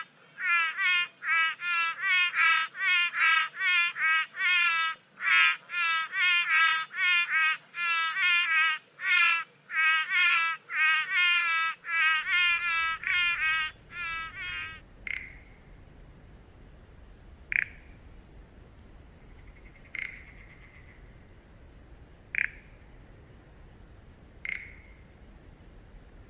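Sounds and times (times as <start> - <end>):
frog bleating: 0.0 - 15.6, 17.5 - 17.8, 19.6 - 21.0, 22.3 - 22.7, 24.4 - 25.0.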